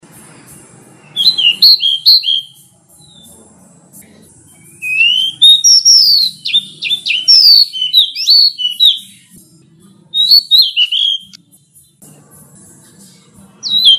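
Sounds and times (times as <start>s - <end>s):
pied bush chat singing high sweet chirping phrases: 0.3s - 3.5s, 4.5s - 9.4s, 10.1s - 11.4s, 13.6s - 13.9s.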